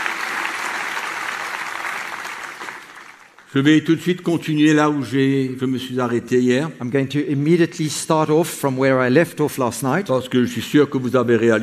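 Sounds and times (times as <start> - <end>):
audience applause: 0.0 - 3.5
speech: 3.5 - 11.6.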